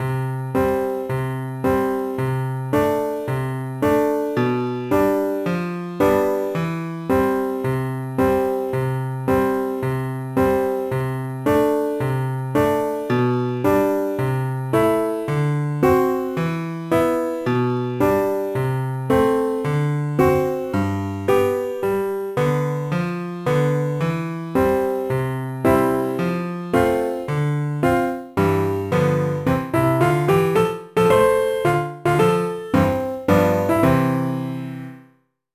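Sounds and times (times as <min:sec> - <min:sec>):
background piano music: 0:00.0 - 0:35.2.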